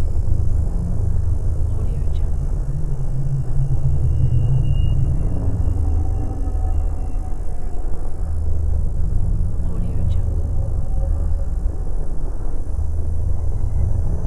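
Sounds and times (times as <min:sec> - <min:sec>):
drone ambience: 0:00.0 - 0:14.2.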